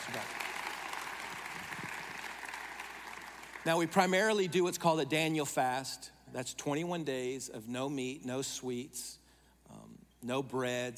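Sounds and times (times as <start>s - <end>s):
audience clapping: 0.0s - 4.0s
speech: 3.6s - 9.2s, 10.2s - 10.9s.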